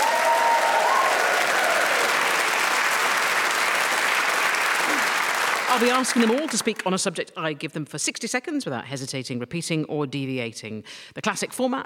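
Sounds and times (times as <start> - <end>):
whoops: 0.0 - 2.2, 4.8 - 5.2
studio audience applause and cheering: 0.0 - 6.9
speech: 5.8 - 11.8.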